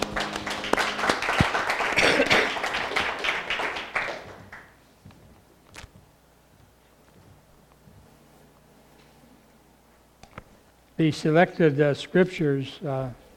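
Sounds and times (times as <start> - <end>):
crowd clapping in church: 0.0 - 4.8
speech: 11.0 - 13.2.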